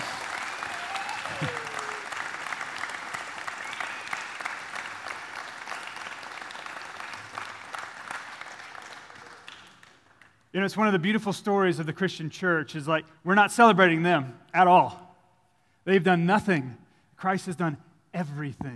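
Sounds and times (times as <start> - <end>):
audience applauding: 0.0 - 10.4
speech: 10.6 - 15.0, 15.9 - 18.7.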